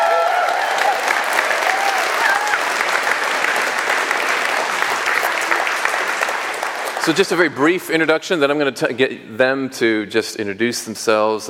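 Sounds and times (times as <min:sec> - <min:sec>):
audience clapping: 0:00.0 - 0:08.0
speech: 0:07.1 - 0:11.4.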